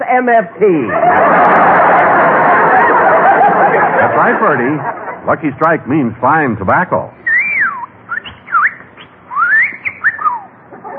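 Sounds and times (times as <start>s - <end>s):
speech: 0.1s - 2.4s, 3.3s - 7.2s
laughter: 0.9s - 5.6s, 10.7s - 10.9s
talking bird whistling: 7.2s - 10.6s.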